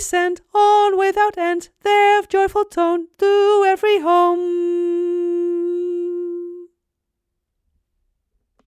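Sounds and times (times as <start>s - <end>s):
tenor voice singing a carol: 0.0s - 6.7s.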